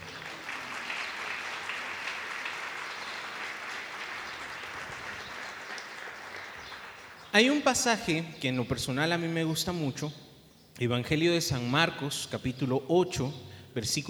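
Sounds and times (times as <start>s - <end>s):
audience applauding: 0.0s - 7.6s
speech: 7.4s - 10.2s, 10.8s - 14.0s.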